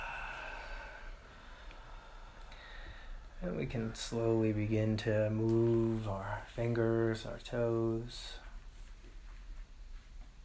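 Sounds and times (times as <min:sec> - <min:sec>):
deep breath in through the nose, out the mouth during a guided meditation: 0:00.0 - 0:03.4
speech: 0:03.4 - 0:08.4.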